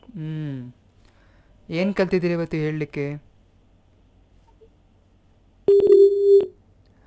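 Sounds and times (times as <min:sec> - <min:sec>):
speech: 0:01.7 - 0:03.3
telephone call-disconnected tone: 0:05.7 - 0:06.5.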